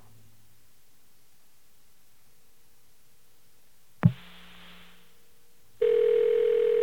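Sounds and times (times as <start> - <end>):
telephone dial tone: 5.8 - 6.8.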